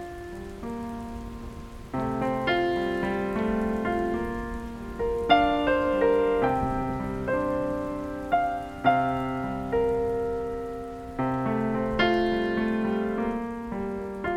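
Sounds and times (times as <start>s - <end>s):
light rain: 0.0s - 14.3s.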